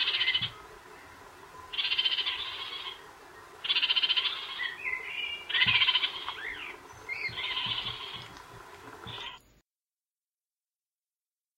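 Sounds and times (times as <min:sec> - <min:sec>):
kakariki call in Whirinaki rainforest: 0:00.0 - 0:00.6, 0:01.7 - 0:03.0, 0:03.6 - 0:08.4.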